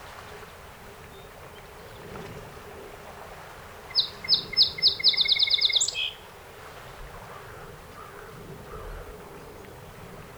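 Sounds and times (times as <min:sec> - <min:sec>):
song sparrow song: 0:03.9 - 0:06.2.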